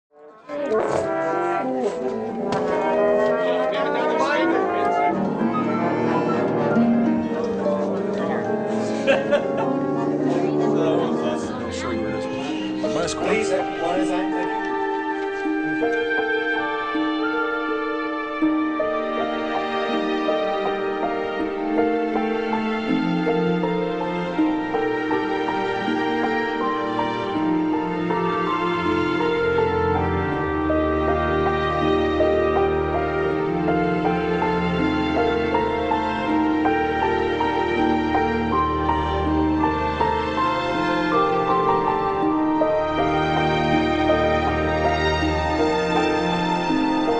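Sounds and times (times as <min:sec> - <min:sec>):
orchestral montage: 0:00.4 - 0:47.1
laughter: 0:03.0 - 0:14.6.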